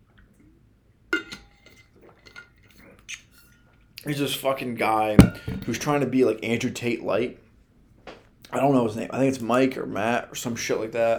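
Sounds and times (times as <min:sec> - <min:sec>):
glassy clink: 0:01.2 - 0:02.5, 0:05.2 - 0:05.7
speech: 0:04.0 - 0:07.4, 0:08.5 - 0:11.1.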